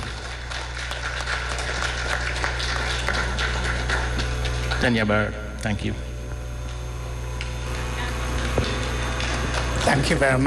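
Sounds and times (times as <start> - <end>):
audience applause: 0.0 - 5.1, 8.4 - 10.4
low constant hum: 0.0 - 10.4
speech: 4.8 - 6.1, 9.9 - 10.4.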